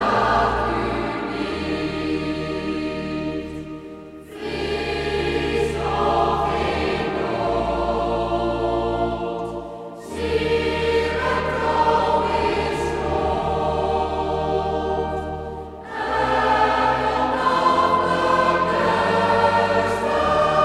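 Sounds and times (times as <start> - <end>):
women's choir: 0.0 - 20.6.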